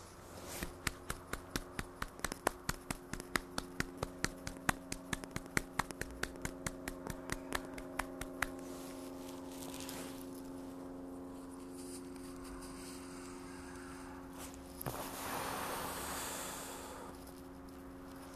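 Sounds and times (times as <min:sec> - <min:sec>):
faint continuous hum: 0:00.0 - 0:18.3
hand clapping: 0:00.6 - 0:08.6.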